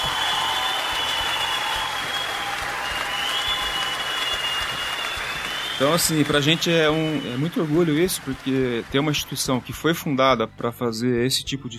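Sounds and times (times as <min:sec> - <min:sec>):
audience applause: 0:00.0 - 0:09.8
speech: 0:05.8 - 0:11.7.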